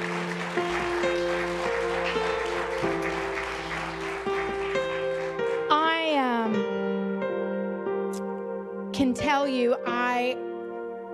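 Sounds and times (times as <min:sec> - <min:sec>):
audience clapping in praise: 0:00.0 - 0:06.0
sustained keyboard or organ chords: 0:00.0 - 0:11.1
speech: 0:09.2 - 0:10.4.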